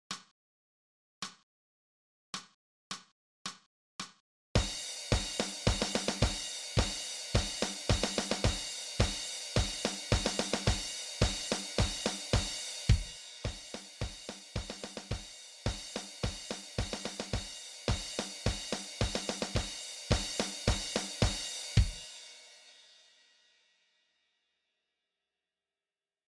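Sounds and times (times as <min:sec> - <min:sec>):
snare drum: 0:04.6 - 0:22.1.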